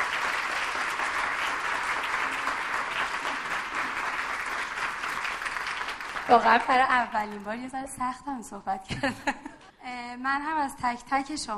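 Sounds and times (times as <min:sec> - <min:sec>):
audience applause: 0:00.0 - 0:07.5
speech: 0:06.3 - 0:09.5, 0:10.2 - 0:11.5.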